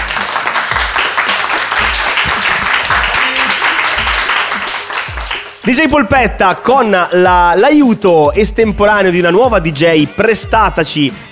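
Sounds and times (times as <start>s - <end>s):
audience applause: 0.0s - 5.7s
speech: 5.7s - 11.3s.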